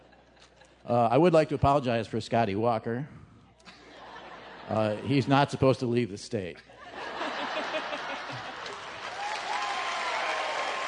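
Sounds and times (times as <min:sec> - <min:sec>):
speech: 0:00.8 - 0:03.2, 0:04.7 - 0:06.7
laughter: 0:03.6 - 0:05.6, 0:06.6 - 0:09.4
audience applause: 0:07.8 - 0:10.8.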